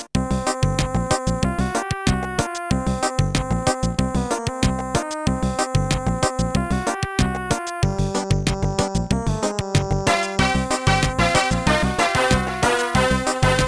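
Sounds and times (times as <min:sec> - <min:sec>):
chiptune music: 0:00.2 - 0:13.6.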